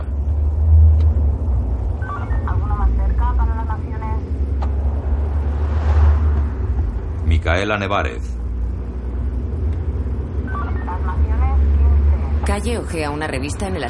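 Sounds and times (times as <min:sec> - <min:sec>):
taxi engine and road noise on a highway: 0:00.0 - 0:13.8
speech: 0:07.5 - 0:08.4, 0:12.5 - 0:13.8.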